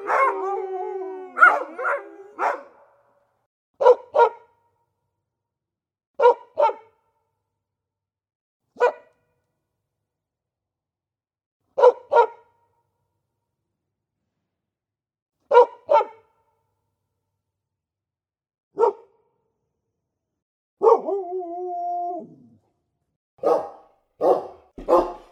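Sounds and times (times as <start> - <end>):
dog barking: 0.0 - 0.6, 1.3 - 3.0, 3.8 - 4.5, 6.2 - 7.0, 8.8 - 9.1, 11.8 - 12.5, 15.5 - 16.3, 18.8 - 19.2, 20.8 - 21.1, 23.4 - 25.3.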